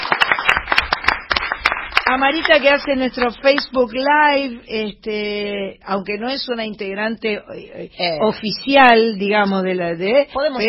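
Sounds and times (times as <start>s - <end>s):
audience applauding: 0.0s - 3.6s
speech: 2.1s - 10.6s.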